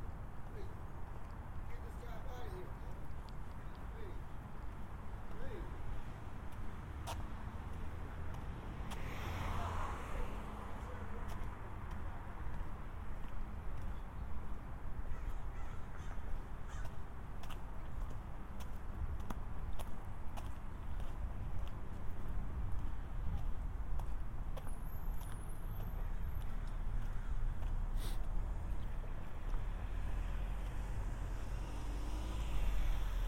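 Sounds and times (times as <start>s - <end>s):
traffic rumble in San Diego: 0.0s - 33.2s
vehicle passing: 6.3s - 13.0s, 24.0s - 33.2s.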